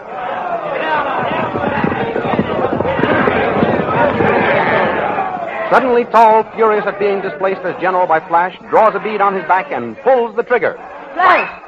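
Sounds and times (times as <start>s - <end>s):
army charging with many voices shouting: 0.0s - 11.6s
rumble of running feet: 0.6s - 7.4s
speech: 5.7s - 11.6s.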